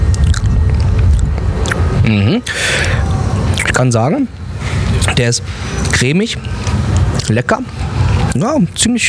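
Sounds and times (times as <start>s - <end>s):
biting and chewing goat cheese: 0.1s - 1.9s
speech: 2.1s - 3.0s, 3.7s - 4.4s, 5.1s - 9.0s.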